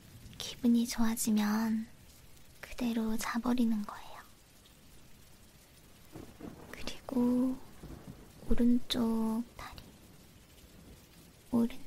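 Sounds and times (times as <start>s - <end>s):
soft rain falling: 0.0s - 11.8s
speech: 0.6s - 1.9s, 2.8s - 4.1s, 7.1s - 7.7s, 8.5s - 9.8s, 11.5s - 11.8s
low thumps: 6.0s - 11.1s.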